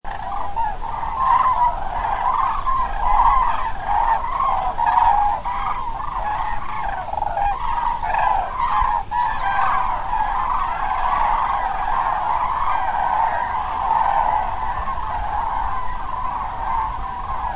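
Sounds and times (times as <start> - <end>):
flock of cranes trumpeting: 0.1 - 17.5.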